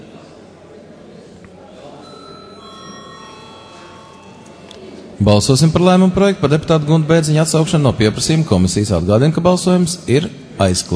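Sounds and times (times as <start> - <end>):
murmur of voices in a parliament chamber: 0.0 - 10.9
chairman's bell ringing in a parliament chamber before a vote: 2.0 - 5.7
speech: 5.2 - 10.9.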